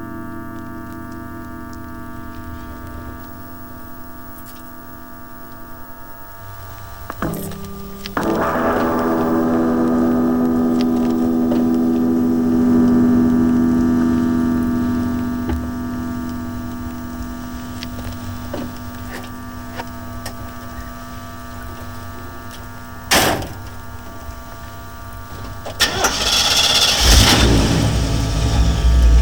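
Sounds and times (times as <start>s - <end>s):
guitar drag: 6.4s - 29.1s.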